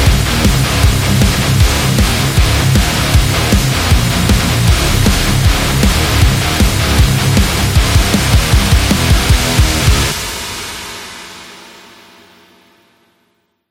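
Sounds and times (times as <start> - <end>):
monster: 0.0 - 10.7.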